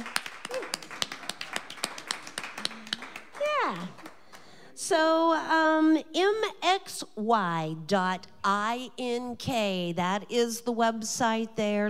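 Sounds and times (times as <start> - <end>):
scattered applause from a small audience: 0.0 - 4.6
speech: 4.9 - 11.8.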